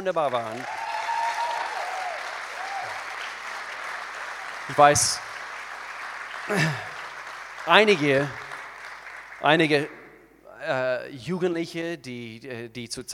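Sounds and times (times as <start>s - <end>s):
speech: 0.0s - 0.8s, 4.7s - 5.3s, 6.5s - 6.9s, 7.6s - 8.4s, 9.4s - 10.0s, 10.6s - 13.1s
audience applause: 0.0s - 10.1s.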